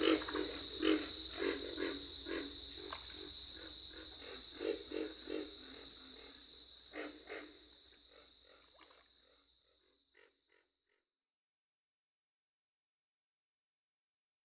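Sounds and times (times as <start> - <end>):
pig frog chorus grunting: 0.0 - 11.0.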